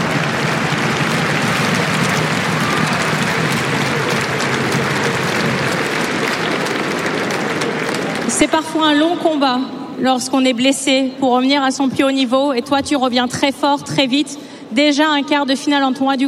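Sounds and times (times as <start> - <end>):
audience applauding: 0.0 - 8.8
speech: 8.4 - 16.2.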